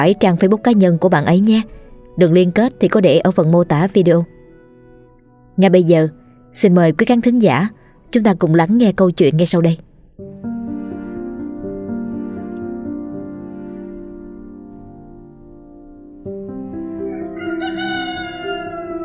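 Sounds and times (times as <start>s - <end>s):
speech: 0.0s - 4.3s, 5.6s - 10.3s
rooster crowing: 17.0s - 19.0s.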